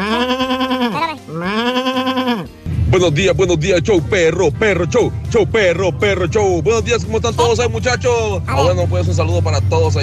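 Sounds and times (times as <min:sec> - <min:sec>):
sheep bleating: 0:00.0 - 0:02.7
speech: 0:03.0 - 0:10.0.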